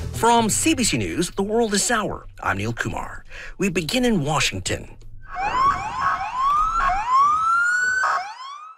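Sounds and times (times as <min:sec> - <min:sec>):
speech: 0:00.2 - 0:05.6
police sirens wailing near the White House: 0:05.3 - 0:08.7.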